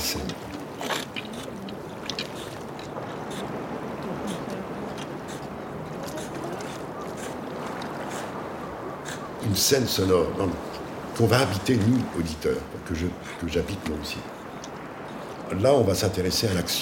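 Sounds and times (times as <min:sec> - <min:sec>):
faint voices of a couple fishing murmuring: 0:00.0 - 0:07.6
calm sea pushing against a compact frieze of rocks: 0:00.0 - 0:16.8
speech: 0:09.5 - 0:14.4, 0:15.5 - 0:16.8.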